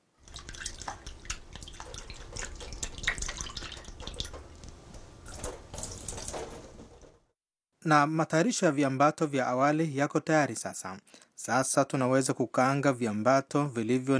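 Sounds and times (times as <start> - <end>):
tap water running while washing dried raisins in a strainer: 0.0 - 7.2
speech: 7.8 - 14.1.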